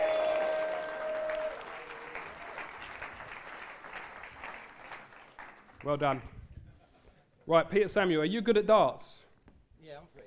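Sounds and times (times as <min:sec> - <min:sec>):
audience round of applause: 0:00.0 - 0:06.2
speech: 0:05.8 - 0:06.4, 0:07.5 - 0:09.2.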